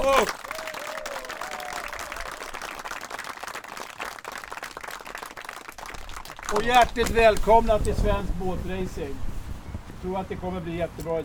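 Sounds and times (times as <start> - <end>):
audience applause: 0.0 - 7.6
speech: 0.1 - 0.5, 6.5 - 9.3, 10.0 - 11.2.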